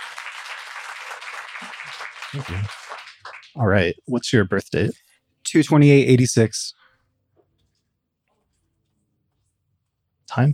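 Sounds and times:
crowd applause: 0.0 - 3.8
speech: 1.3 - 2.9, 3.6 - 6.8, 10.3 - 10.5.

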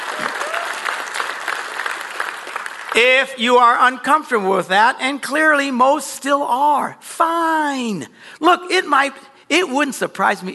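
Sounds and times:
church audience applauding: 0.0 - 3.4
speech: 3.0 - 10.5.

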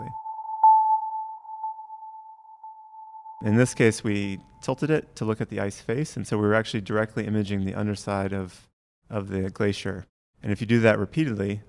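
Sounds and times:
sonar sound pulses: 0.0 - 4.1
steady electronic tone: 0.0 - 4.2
speech: 3.4 - 11.6.

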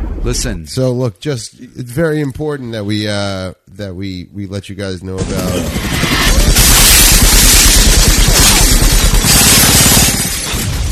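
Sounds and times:
speech: 0.2 - 6.4
chain gun fire from the 1999 film The Matrix: 6.2 - 10.9
shattering debris: 6.4 - 10.9.

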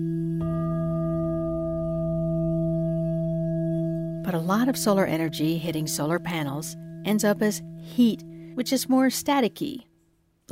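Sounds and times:
prayer bowl struck and ringing: 0.0 - 9.9
speech: 4.3 - 9.9.

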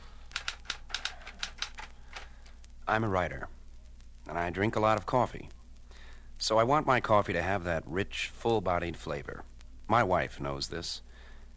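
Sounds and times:
typewriter keys clacking in the other room: 0.3 - 2.3
speech: 2.9 - 3.6, 4.3 - 5.6, 6.4 - 11.1.

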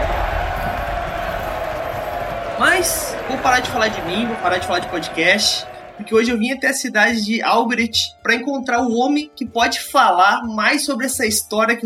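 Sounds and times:
applause: 0.0 - 6.2
cheering: 0.0 - 6.5
speech: 2.8 - 11.8.

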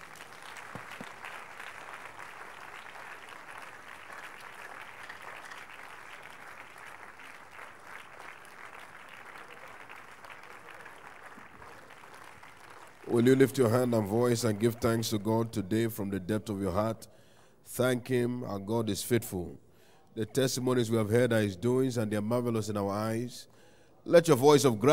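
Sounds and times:
people clapping: 0.0 - 15.6
speech: 13.1 - 19.6, 20.2 - 24.9.

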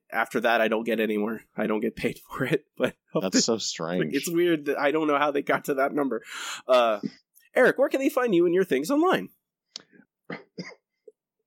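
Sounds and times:
speech: 0.1 - 9.4, 10.3 - 10.8
harsh coughs: 10.3 - 11.0.

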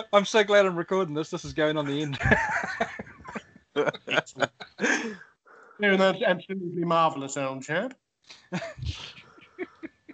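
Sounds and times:
speech: 0.0 - 3.0, 3.8 - 9.2
laughter: 0.0 - 5.2, 5.8 - 6.4, 8.5 - 10.1
heavy huffing breaths: 4.1 - 5.9.

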